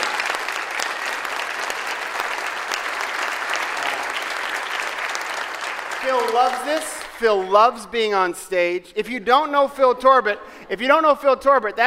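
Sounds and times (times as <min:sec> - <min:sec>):
audience round of applause: 0:00.0 - 0:07.6
speech: 0:06.0 - 0:11.8.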